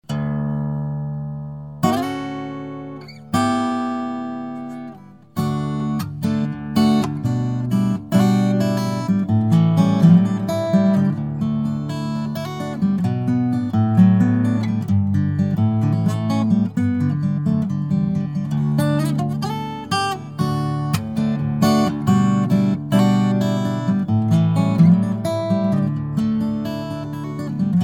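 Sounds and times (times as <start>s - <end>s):
guitar: 0.0s - 27.8s.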